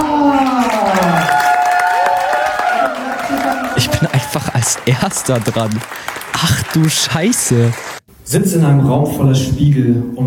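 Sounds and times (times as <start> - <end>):
audience clapping: 0.3 - 8.0
speech: 4.8 - 10.2.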